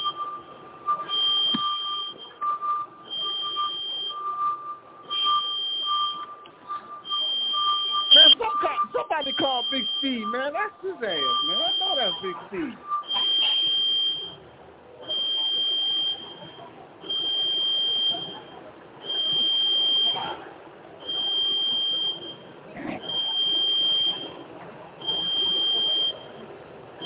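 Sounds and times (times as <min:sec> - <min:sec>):
fire alarm buzzing in long harsh high-pitched bursts: 0:00.0 - 0:14.4, 0:15.0 - 0:20.4, 0:21.0 - 0:22.5, 0:23.1 - 0:26.4
speech: 0:09.7 - 0:12.9.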